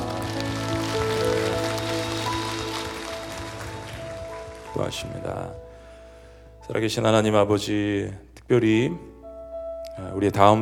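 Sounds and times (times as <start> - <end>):
audience applause: 0.0 - 5.6
speech: 4.8 - 5.6, 6.7 - 9.1, 10.0 - 10.6.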